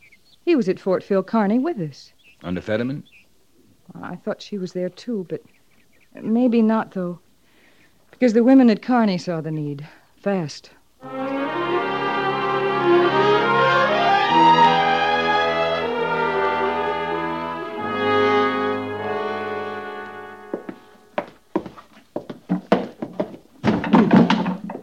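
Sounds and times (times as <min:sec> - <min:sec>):
speech: 0:00.4 - 0:03.2, 0:03.9 - 0:07.2, 0:08.1 - 0:11.4
sustained music: 0:11.0 - 0:21.2
boxes being moved into quarters and set down: 0:22.5 - 0:24.8.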